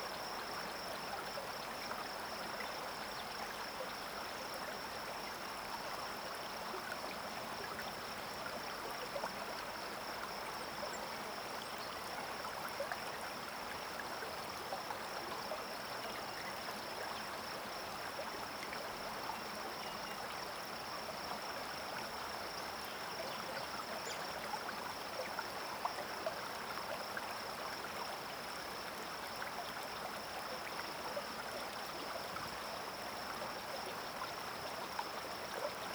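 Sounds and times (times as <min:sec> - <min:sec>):
calm river and streams flowing: 0:00.0 - 0:35.9.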